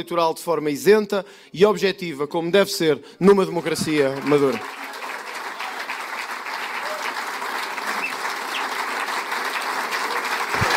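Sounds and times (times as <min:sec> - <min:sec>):
speech: 0:00.0 - 0:04.8
audience applause in a hall: 0:03.5 - 0:10.7.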